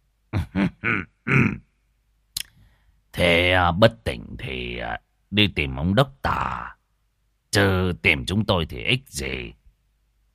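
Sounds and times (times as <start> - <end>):
man clearing his throat: 0.4 - 1.8
speech: 0.6 - 1.6, 3.5 - 6.8, 7.6 - 9.6.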